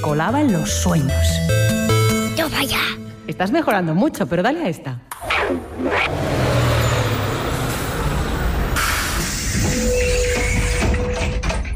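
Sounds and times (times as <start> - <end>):
speech: 0.0 - 1.8, 2.4 - 6.5
bus brake squeal: 5.8 - 11.2
school bus engine droning: 6.0 - 11.2.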